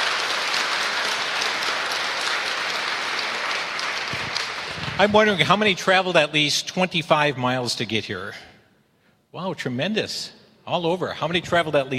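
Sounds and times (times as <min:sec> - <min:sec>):
crowd clapping in a large room: 0:00.0 - 0:05.8
speech: 0:05.0 - 0:08.5, 0:09.3 - 0:11.9.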